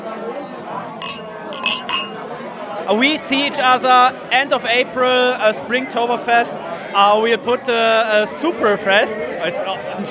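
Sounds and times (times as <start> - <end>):
murmur of voices and chatter: 0.0 - 10.0
glasses clinking in a toast: 1.0 - 2.2
speech: 2.9 - 10.0.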